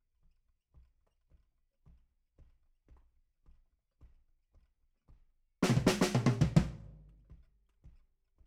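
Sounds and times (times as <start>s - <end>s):
bass drum: 5.6s - 7.3s.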